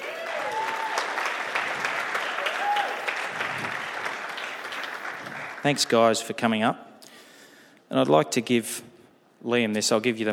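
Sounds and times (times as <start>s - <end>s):
audience applauding to welcome two people onto a stage: 0.0s - 5.9s
speech: 5.6s - 6.9s, 7.9s - 10.3s.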